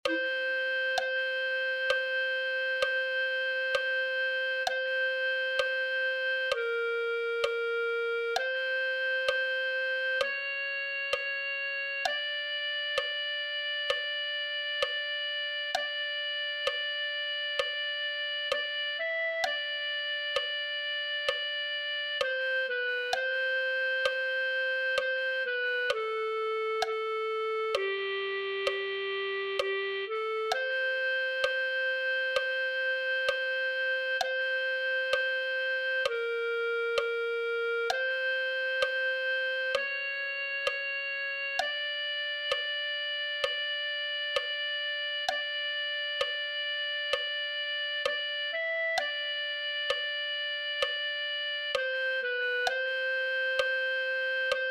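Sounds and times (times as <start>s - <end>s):
clarinet playing: 0.0s - 54.6s.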